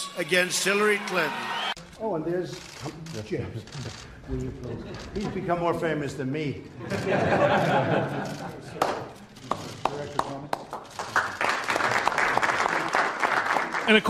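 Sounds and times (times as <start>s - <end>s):
crowd applauding: 0.0s - 1.8s, 8.3s - 14.0s
speech: 0.2s - 9.1s, 13.9s - 14.0s
laughter: 3.2s - 5.7s, 6.7s - 9.8s.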